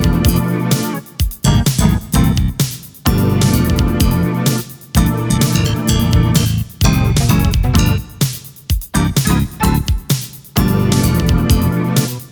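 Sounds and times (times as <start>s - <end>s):
Roland SC-55mkII sound module music: 0.0s - 8.3s, 9.0s - 12.3s.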